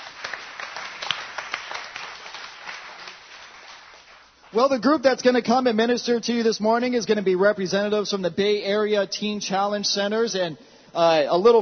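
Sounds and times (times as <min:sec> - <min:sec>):
crowd applauding: 0:00.0 - 0:04.6
speech: 0:04.5 - 0:11.6.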